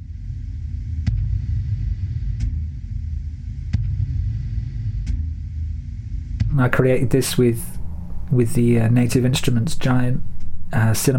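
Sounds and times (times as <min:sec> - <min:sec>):
heartbeat in a music track: 0:01.0 - 0:08.4
speech: 0:06.6 - 0:11.1.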